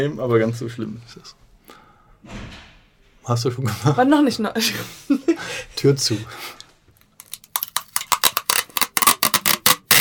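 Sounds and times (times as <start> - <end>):
speech: 0.0 - 6.6
adhesive tape pulled off a tape dispenser: 7.0 - 9.9.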